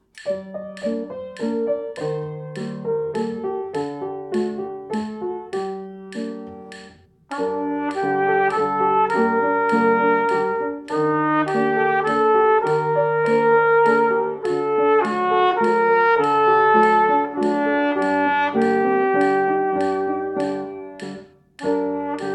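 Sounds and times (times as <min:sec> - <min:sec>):
piano: 0:00.0 - 0:22.3
trumpet: 0:07.3 - 0:21.0, 0:21.7 - 0:22.3.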